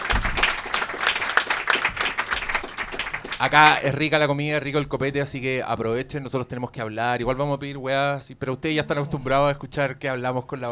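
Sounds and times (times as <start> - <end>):
audience applause: 0.0 - 4.0
speech: 3.4 - 10.7.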